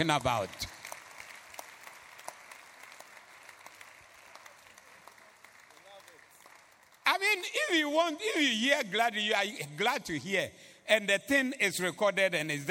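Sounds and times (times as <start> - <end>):
speech: 0.0 - 0.7, 7.3 - 12.6
audience clapping: 0.0 - 7.8.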